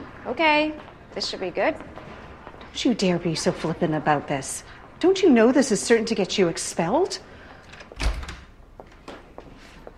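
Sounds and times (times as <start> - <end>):
speech: 0.2 - 2.0, 2.7 - 7.3
office door opening: 7.6 - 8.6.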